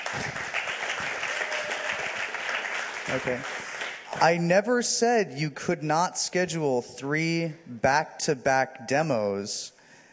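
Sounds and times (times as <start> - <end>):
applause for a team at a tech lightning talk event: 0.0 - 4.2
speech: 3.1 - 3.6, 4.2 - 9.8.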